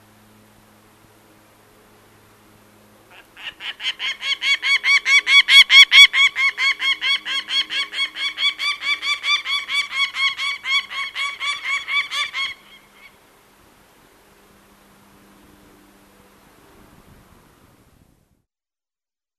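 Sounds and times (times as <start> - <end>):
peregrine falcon cacking: 3.1 - 13.2.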